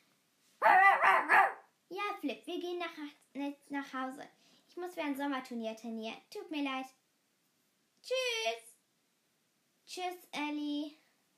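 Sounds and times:
dog barking: 0.6s - 1.7s
speech: 3.8s - 7.0s, 8.0s - 8.7s, 9.9s - 11.0s.

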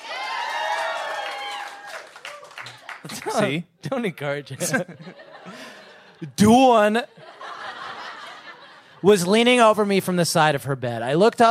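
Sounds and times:
audience whoops and cheers: 0.0s - 2.7s
audience applause: 0.0s - 3.6s
laughter: 2.6s - 3.6s, 4.5s - 9.4s
speech: 3.0s - 7.2s, 9.0s - 11.4s.

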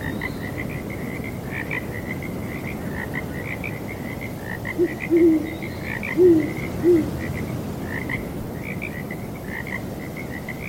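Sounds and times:
faint wind: 0.0s - 10.6s
frog chorus: 0.0s - 10.6s
owl hooting: 4.8s - 7.1s.

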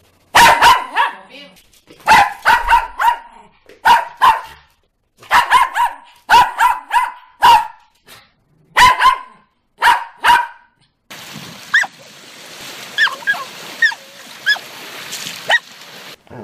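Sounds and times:
dog barking: 0.3s - 1.3s, 2.0s - 7.9s, 8.7s - 10.8s, 15.5s - 15.7s.

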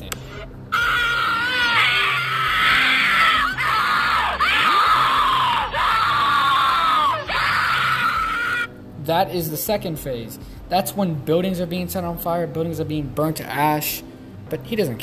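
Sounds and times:
distorted wailing screams from the Suicide Mouse video: 0.7s - 8.7s
speech: 9.1s - 15.0s.

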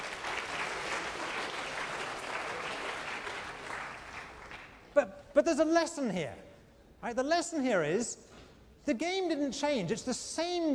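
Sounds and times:
audience applause: 0.0s - 4.8s
speech: 5.0s - 10.7s.

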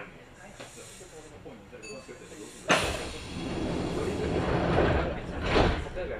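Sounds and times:
loud rushing hiss: 2.2s - 4.5s
Kintetsu Osaka Line section semi-express train rumbling: 2.8s - 6.0s.

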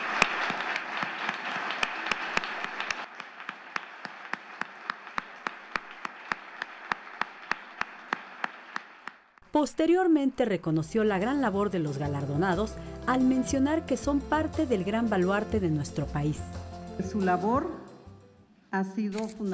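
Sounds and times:
audience applause: 0.0s - 9.4s
speech: 9.6s - 17.8s, 18.7s - 19.5s.

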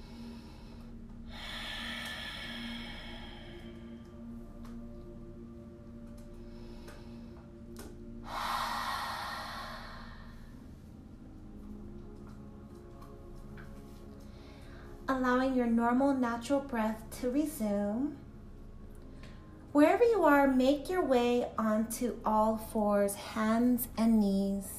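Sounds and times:
deep exaggerated breathing during post-run yoga: 0.0s - 4.3s, 8.2s - 10.7s
speech: 15.1s - 18.2s, 19.8s - 24.7s.

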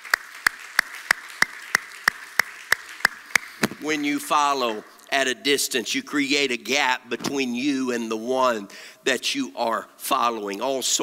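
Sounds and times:
audience hand clapping: 0.0s - 4.9s
speech: 3.8s - 11.0s.

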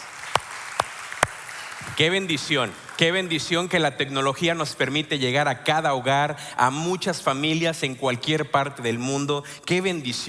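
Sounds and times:
audience applause: 0.0s - 3.8s
speech: 2.0s - 10.2s.

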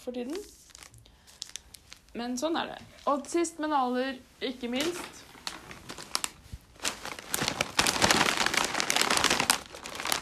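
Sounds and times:
speech: 0.0s - 0.6s, 2.1s - 5.2s
potato chip bag crinkling: 0.4s - 2.1s, 5.3s - 10.2s.

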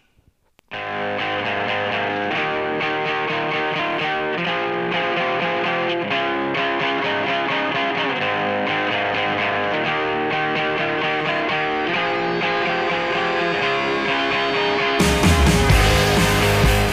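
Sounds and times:
rock band song with distorted guitars, bass and drums: 0.8s - 16.9s.

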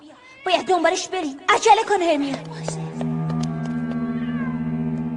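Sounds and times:
speech: 0.4s - 2.8s
cat meowing: 3.6s - 5.0s.

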